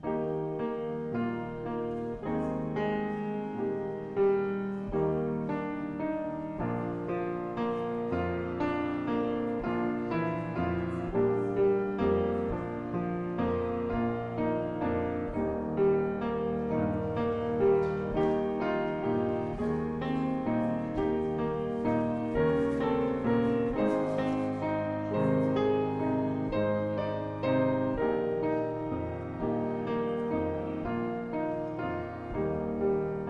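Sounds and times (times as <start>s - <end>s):
prelude music: 0.0s - 33.2s.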